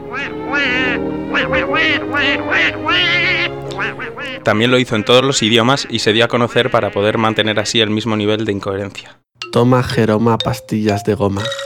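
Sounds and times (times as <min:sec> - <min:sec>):
raspy nasal cartoon duck voice quacking: 0:00.2 - 0:07.7
speech: 0:00.2 - 0:11.6.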